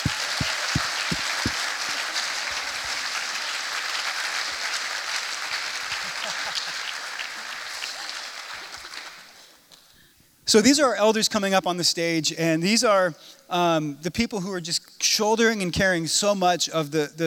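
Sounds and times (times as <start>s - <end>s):
audience applauding: 0.0s - 9.2s
speech: 10.5s - 17.2s.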